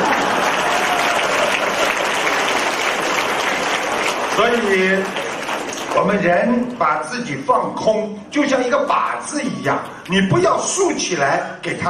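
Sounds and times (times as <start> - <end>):
audience applause: 0.0 - 6.2
speech: 4.4 - 5.2, 6.0 - 11.8.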